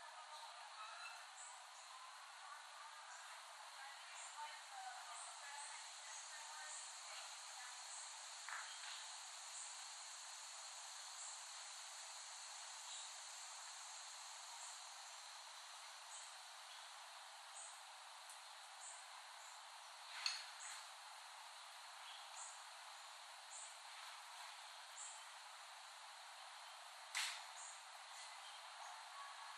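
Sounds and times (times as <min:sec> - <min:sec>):
cicadas buzzing: 0:00.2 - 0:29.5
sharp click: 0:27.1 - 0:27.4.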